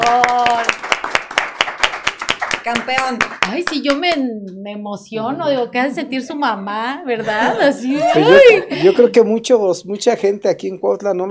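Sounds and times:
audience applause: 0.0 - 3.8
speech: 2.7 - 11.2
laughter: 7.1 - 9.3.

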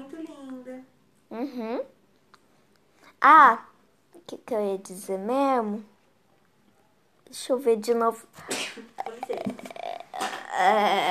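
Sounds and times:
speech: 1.3 - 1.9, 3.2 - 5.9, 7.3 - 9.4, 10.6 - 11.0
person sneezing: 8.4 - 8.9.

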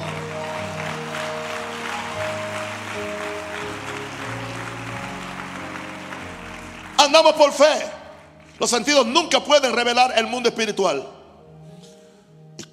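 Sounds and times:
audience applauding: 0.0 - 9.4
speech: 7.1 - 8.0, 8.6 - 11.2.

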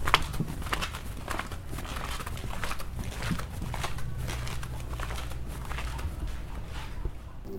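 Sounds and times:
faint shuffles and creaks: 0.0 - 7.5
footsteps walking through a house: 0.0 - 7.5.

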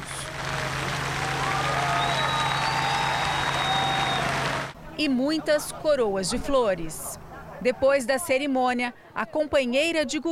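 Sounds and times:
crowd applause at farewell: 0.0 - 4.8
speech: 5.0 - 10.2.

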